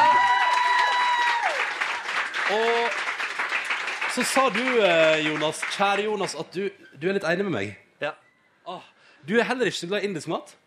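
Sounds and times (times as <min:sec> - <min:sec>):
audience applause: 0:00.0 - 0:06.4
speech: 0:02.5 - 0:03.0, 0:04.2 - 0:10.6.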